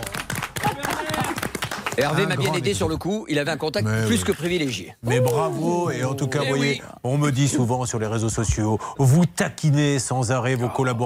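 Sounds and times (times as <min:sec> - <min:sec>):
studio audience applause: 0:00.0 - 0:02.7
speech: 0:02.0 - 0:11.0.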